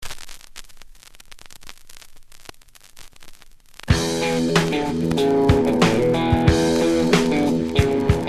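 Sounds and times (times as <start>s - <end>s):
crackling: 0.0s - 8.2s.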